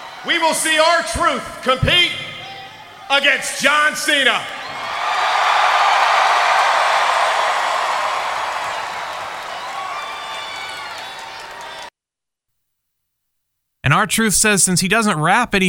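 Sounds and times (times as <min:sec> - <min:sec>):
arena crowd chanting in Omaha Nebraska: 0:00.0 - 0:11.9
speech: 0:00.2 - 0:02.3, 0:03.1 - 0:04.7, 0:13.8 - 0:15.6.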